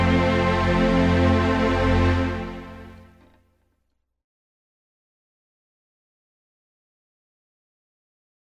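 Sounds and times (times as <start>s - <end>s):
violin playing: 0.0s - 3.4s.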